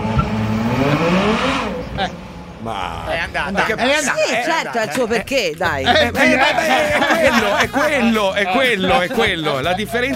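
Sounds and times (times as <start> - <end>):
V12 car engine pulling away and accelerating: 0.0 - 3.6
speech: 2.0 - 10.1
laughter: 2.7 - 10.1.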